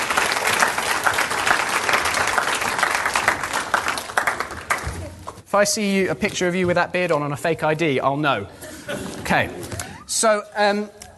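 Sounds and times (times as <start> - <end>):
crowd applauding: 0.0 - 5.2
speech: 5.5 - 9.6, 10.2 - 11.0.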